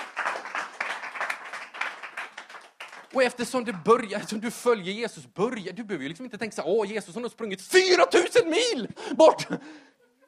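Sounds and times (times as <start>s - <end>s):
audience applause: 0.0s - 3.6s
speech: 3.1s - 9.9s.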